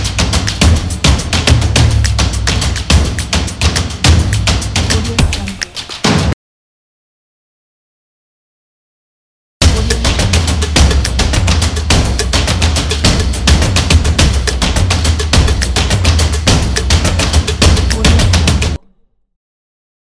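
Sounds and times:
action drums: 0.0s - 6.4s, 9.6s - 18.8s.

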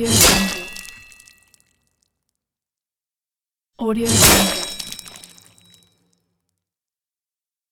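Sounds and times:
sword hit: 0.1s - 0.9s, 4.1s - 4.9s
blood splatter: 0.1s - 1.7s, 4.1s - 5.8s.

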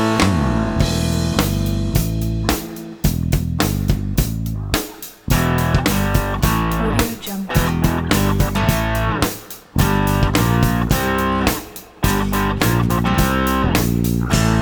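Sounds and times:
vintage rock music: 0.0s - 14.5s.

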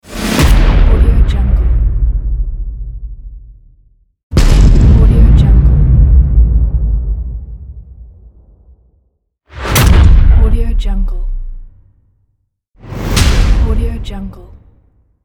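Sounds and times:
trailer impact hits: 0.0s - 12.0s, 12.8s - 15.0s.

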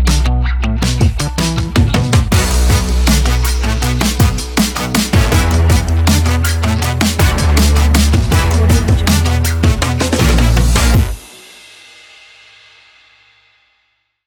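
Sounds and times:
upbeat funk groove: 0.1s - 11.2s.

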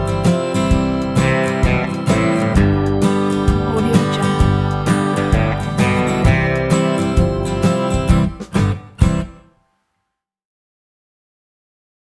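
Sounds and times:
laid back country band playing: 0.0s - 9.4s.

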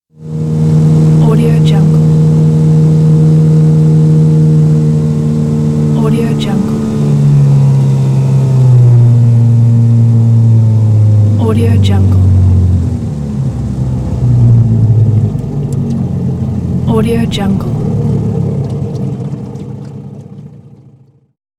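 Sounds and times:
boat outboard motor: 0.0s - 21.4s.

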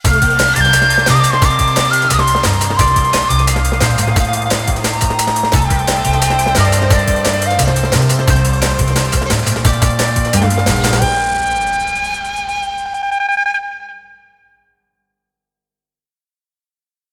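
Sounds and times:
Japanese ninja drum and bass logo jingle: 0.0s - 13.2s.

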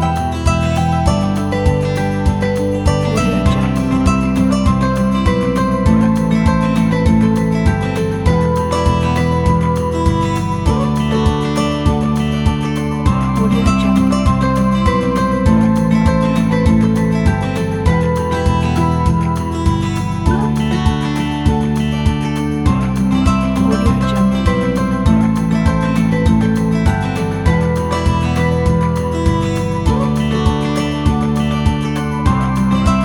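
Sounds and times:
folk acoustic guitars: 0.0s - 33.0s.

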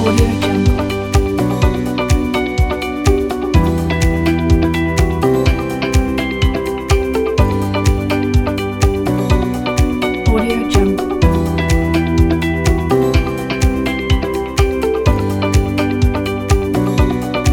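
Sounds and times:
inspiring uplifting upbeat corporate music: 0.0s - 17.5s.

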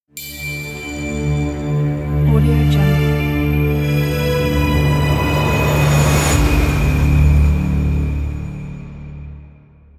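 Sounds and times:
mystical cinematic logo: 0.2s - 9.9s.

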